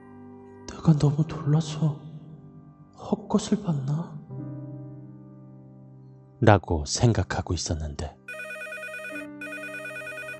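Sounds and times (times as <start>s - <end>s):
speech: 0.8s - 2.0s, 3.0s - 4.2s, 6.4s - 8.2s
home telephone ringing: 8.3s - 10.3s.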